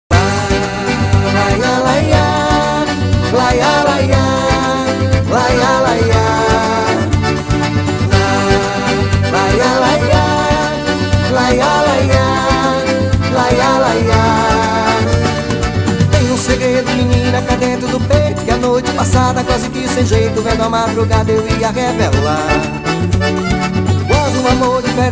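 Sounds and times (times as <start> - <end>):
forró music: 0.1 - 25.1.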